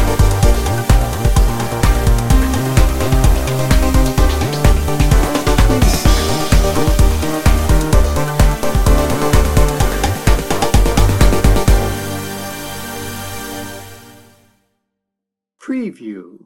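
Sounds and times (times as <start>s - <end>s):
hi-NRG music bed: 0.0s - 12.6s.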